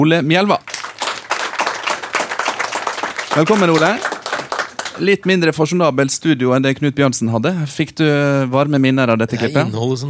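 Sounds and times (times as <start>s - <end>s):
speech: 0.0s - 0.7s, 3.4s - 4.1s, 5.0s - 10.0s
hands clapping: 0.6s - 5.3s.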